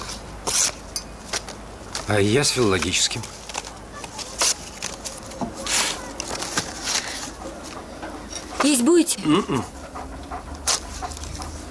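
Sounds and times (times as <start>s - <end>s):
low hum: 0.0s - 11.6s
speech: 2.1s - 3.4s, 8.6s - 9.8s
dog panting: 6.7s - 11.6s.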